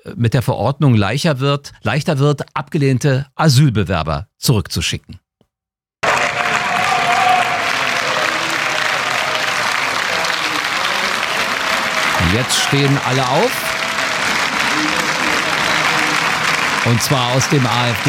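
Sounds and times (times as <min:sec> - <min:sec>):
speech: 0:00.0 - 0:05.2, 0:12.3 - 0:13.6, 0:16.8 - 0:18.0
parliamentary audience applause: 0:06.0 - 0:18.0.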